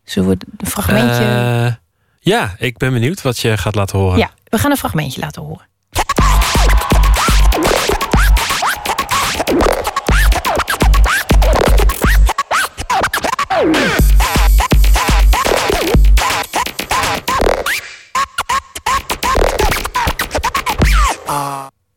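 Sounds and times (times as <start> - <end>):
speech: 0.1 - 5.7
DJ turntable scratching: 0.5 - 1.4, 6.0 - 21.3.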